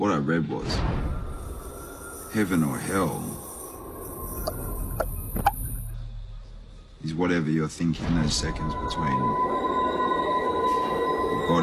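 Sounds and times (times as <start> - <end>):
speech: 0.0 - 1.2, 2.3 - 3.3, 7.0 - 9.8
keening train wheel whine from a 2007 Australian film trailer: 0.8 - 11.6.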